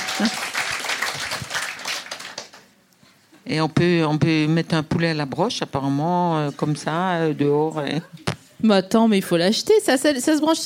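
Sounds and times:
audience applause: 0:00.0 - 0:02.7
speech: 0:00.2 - 0:00.5, 0:03.5 - 0:10.6.

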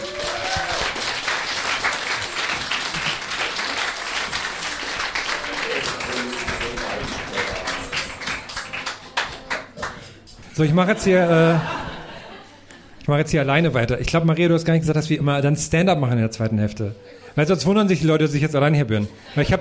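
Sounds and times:
audience applause: 0:00.0 - 0:10.1
speech: 0:10.6 - 0:11.8, 0:13.1 - 0:19.6
laughter: 0:10.6 - 0:13.0.

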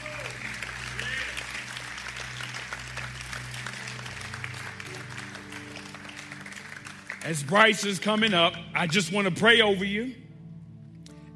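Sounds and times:
crowd applause: 0:00.0 - 0:08.6
speech: 0:07.2 - 0:10.2.

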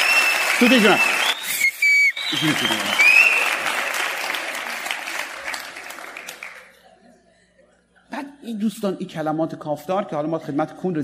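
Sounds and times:
sharp whistles: 0:00.0 - 0:03.6
audience clapping: 0:00.0 - 0:06.8
speech: 0:00.6 - 0:01.1, 0:02.3 - 0:03.1, 0:08.5 - 0:11.0
laughter: 0:02.3 - 0:08.4.

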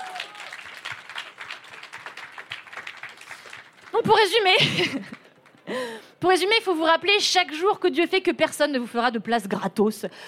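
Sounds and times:
applause: 0:00.0 - 0:05.9
speech: 0:03.9 - 0:10.2.

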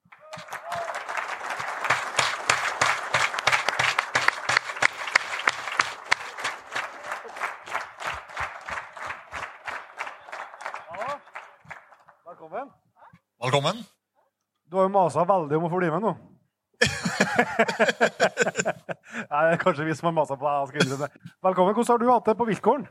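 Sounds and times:
audience applause at a live evening talk event: 0:00.0 - 0:12.2, 0:17.1 - 0:18.6
speech: 0:13.4 - 0:13.9, 0:14.7 - 0:16.3, 0:17.4 - 0:22.8
laughter: 0:16.8 - 0:19.8, 0:20.8 - 0:21.1.

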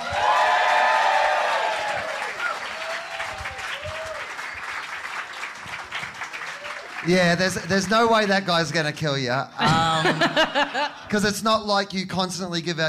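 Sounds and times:
crowd clapping: 0:00.0 - 0:09.1
speech: 0:07.1 - 0:12.8
laughter: 0:09.6 - 0:11.1.

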